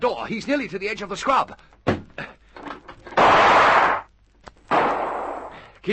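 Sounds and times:
speech: 0:00.0 - 0:02.3
gunshot through a window: 0:03.2 - 0:04.1, 0:04.7 - 0:05.6.

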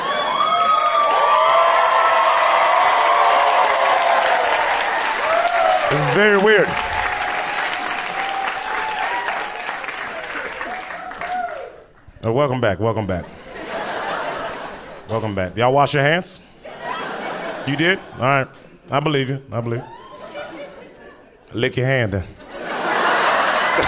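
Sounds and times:
audience clapping: 0:00.0 - 0:12.1, 0:23.0 - 0:23.8
speech: 0:05.9 - 0:06.9, 0:12.2 - 0:13.4, 0:15.1 - 0:16.5, 0:17.6 - 0:20.0, 0:21.5 - 0:22.4
laughter: 0:13.2 - 0:15.5, 0:16.6 - 0:19.1, 0:19.8 - 0:21.5, 0:22.1 - 0:23.8.

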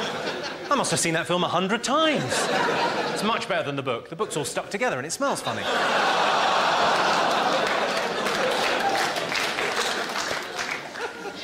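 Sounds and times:
laughter: 0:00.0 - 0:01.2, 0:02.0 - 0:03.7, 0:05.4 - 0:11.4
speech: 0:00.7 - 0:07.0
audience applause: 0:05.9 - 0:11.4.

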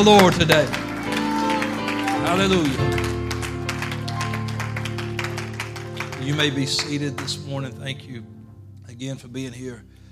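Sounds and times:
speech: 0:00.0 - 0:00.8, 0:02.3 - 0:03.1, 0:06.3 - 0:08.3, 0:09.0 - 0:09.9
audience clapping: 0:00.0 - 0:07.7.

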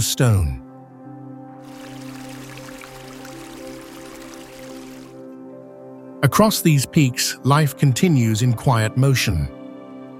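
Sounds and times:
speech: 0:00.0 - 0:00.6, 0:06.2 - 0:09.6
soft sustained musical drone: 0:00.0 - 0:10.1
mountain stream of snowmelt water flowing: 0:01.6 - 0:05.3.

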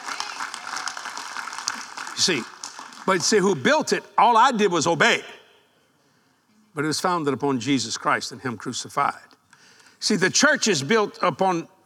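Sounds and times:
audience clapping: 0:00.0 - 0:03.8
speech: 0:02.2 - 0:05.4, 0:06.8 - 0:09.4, 0:10.0 - 0:11.8.

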